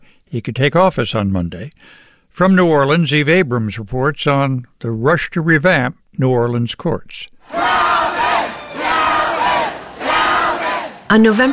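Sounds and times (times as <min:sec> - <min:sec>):
speech: 0:00.3 - 0:07.6, 0:11.1 - 0:11.5
exuberant crowd cheering and shouting: 0:07.4 - 0:11.5.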